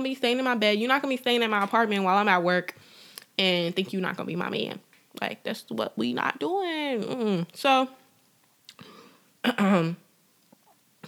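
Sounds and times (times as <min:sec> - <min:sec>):
speech: 0:00.0 - 0:08.0, 0:08.8 - 0:10.0
person clearing throat to shift mucus: 0:09.4 - 0:10.1.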